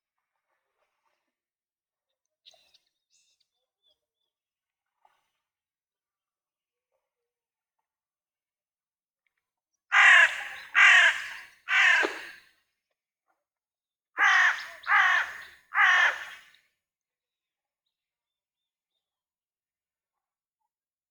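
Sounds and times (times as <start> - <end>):
crows: 9.9 - 12.4, 14.2 - 16.5.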